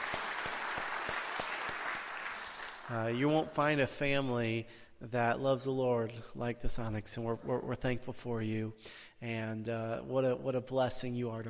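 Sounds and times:
church congregation applauding newly welcomed members: 0.0s - 3.4s
speech: 2.9s - 11.4s.

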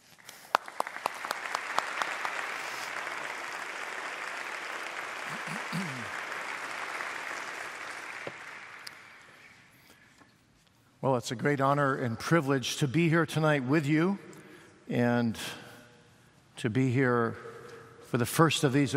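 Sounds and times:
audience at a Christian gathering applauding to welcome a preacher: 0.4s - 9.6s
speech: 11.0s - 14.3s, 14.9s - 15.6s, 16.6s - 17.5s, 18.1s - 18.9s.

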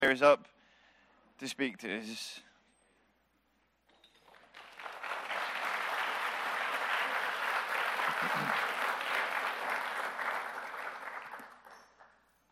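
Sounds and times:
speech: 0.1s - 0.6s, 1.4s - 2.5s
audience clapping: 4.2s - 12.5s.

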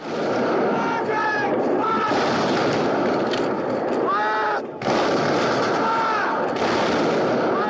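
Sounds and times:
war movie artillery booms: 0.0s - 7.6s
war movie gunfire: 0.0s - 7.6s
shouting voices in war movie: 0.7s - 2.2s, 4.0s - 4.8s, 5.7s - 6.6s, 7.4s - 7.6s.

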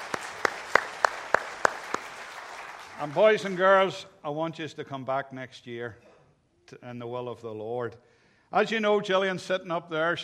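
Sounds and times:
audience clapping at an evening gathering for children: 0.0s - 4.0s
speech: 3.0s - 6.1s, 6.7s - 10.2s.

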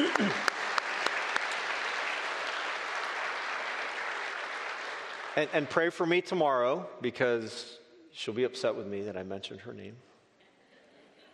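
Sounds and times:
audience round of applause: 0.0s - 6.0s
speech: 5.4s - 10.1s.

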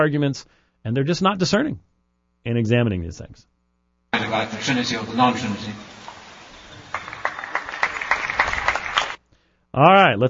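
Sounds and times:
speech: 0.0s - 3.5s, 4.1s - 6.1s, 9.8s - 10.2s
golf clap from another room: 5.8s - 9.2s.

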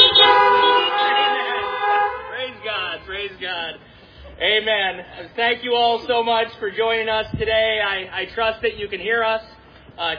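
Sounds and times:
car horns beeping: 0.0s - 3.9s
speech: 3.3s - 10.1s.

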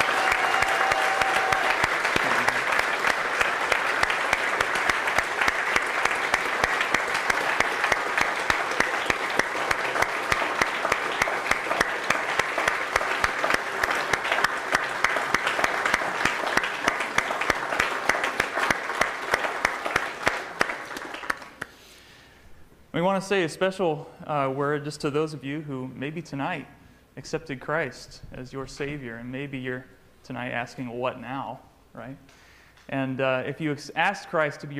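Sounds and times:
audience round of applause: 0.0s - 21.7s
speech: 23.2s - 34.7s.

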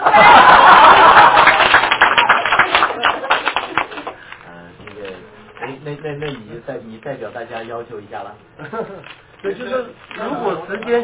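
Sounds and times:
laughter: 0.0s - 2.0s, 8.6s - 9.2s
applause from a group: 0.0s - 4.4s
speech: 6.0s - 11.0s.

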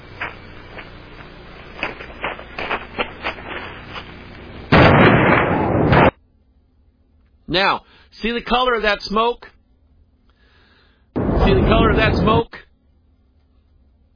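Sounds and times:
explosion blast played from video footage of a fire: 4.7s - 6.2s, 11.2s - 12.5s
speech: 7.5s - 9.5s, 11.4s - 12.6s.

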